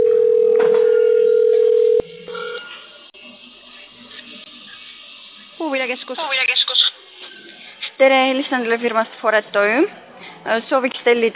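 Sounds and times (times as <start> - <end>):
telephone hold tone: 0.0 - 2.7
speech: 6.1 - 6.5, 8.0 - 11.3.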